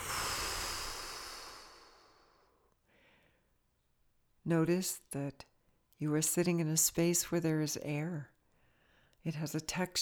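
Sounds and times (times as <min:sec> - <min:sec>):
person exhaling a deep breath through the mouth during a guided meditation: 0:00.0 - 0:03.2
speech: 0:04.5 - 0:08.3, 0:09.2 - 0:10.0.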